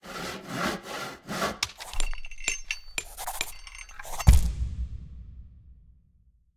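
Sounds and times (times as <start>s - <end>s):
brush-style crafting: 0.6s - 4.4s.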